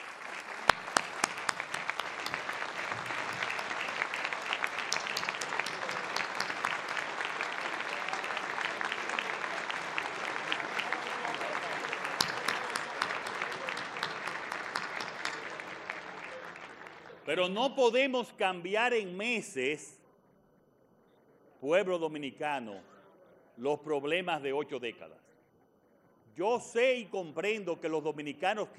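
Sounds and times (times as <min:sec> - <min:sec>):
audience applause: 0:00.0 - 0:17.4
speech: 0:17.3 - 0:20.0, 0:21.6 - 0:22.9, 0:23.6 - 0:25.2, 0:26.4 - 0:28.7.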